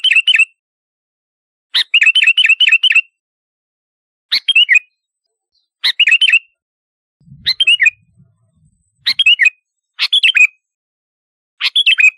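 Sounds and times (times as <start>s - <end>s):
sooty-headed bulbul chirpy song: 0.0s - 0.6s, 1.8s - 3.2s, 4.3s - 6.6s, 7.2s - 10.8s, 11.6s - 12.1s.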